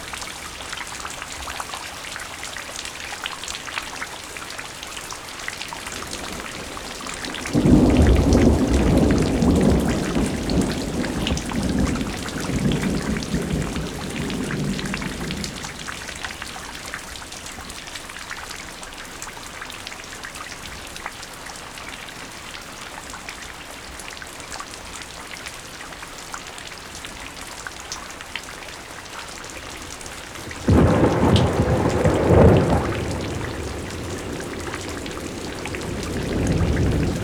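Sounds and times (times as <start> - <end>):
rain: 0.0 - 37.2
thunder: 5.8 - 16.6, 30.3 - 37.2.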